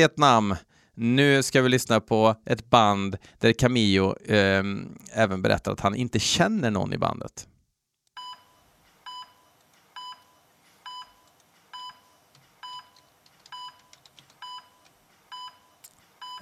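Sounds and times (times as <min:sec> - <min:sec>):
speech: 0:00.0 - 0:07.5
heart monitor beeping: 0:08.2 - 0:16.3.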